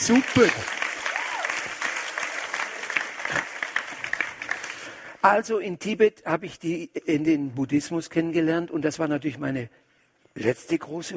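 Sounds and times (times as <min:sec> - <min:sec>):
speech: 0:00.0 - 0:00.8, 0:05.2 - 0:09.8, 0:10.4 - 0:11.1
audience applause: 0:00.0 - 0:05.2.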